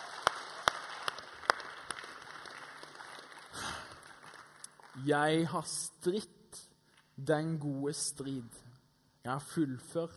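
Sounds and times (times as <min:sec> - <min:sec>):
audience applause: 0:00.0 - 0:05.0
speech: 0:05.0 - 0:10.1.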